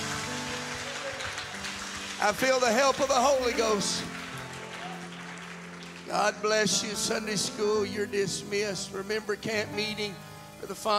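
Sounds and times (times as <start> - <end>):
audience clapping hands: 0.0 - 7.0
speech: 2.2 - 4.2, 6.1 - 10.9.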